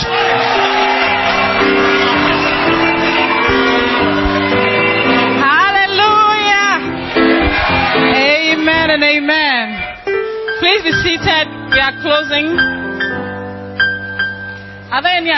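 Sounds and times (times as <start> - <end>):
church congregation shouting and cheering: 0.0 - 11.7
sustained musical tones: 0.1 - 9.1, 9.7 - 14.9
speech: 11.0 - 12.7, 15.0 - 15.3.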